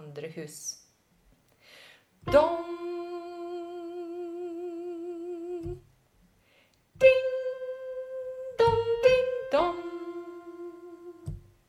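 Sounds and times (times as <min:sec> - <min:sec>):
soprano voice: 0:02.3 - 0:05.8, 0:07.0 - 0:11.4.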